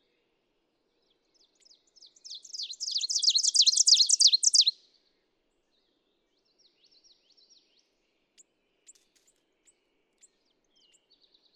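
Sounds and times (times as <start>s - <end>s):
ovenbird singing: 1.6s - 4.8s.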